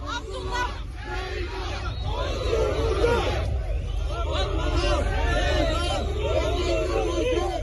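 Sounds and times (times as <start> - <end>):
protest crowd chanting in the street: 0.0 - 7.6.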